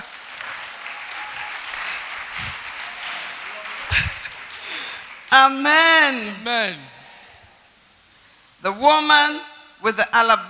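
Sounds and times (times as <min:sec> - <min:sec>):
crowd applauding: 0:00.0 - 0:05.3
speech: 0:05.4 - 0:07.0, 0:08.6 - 0:10.4.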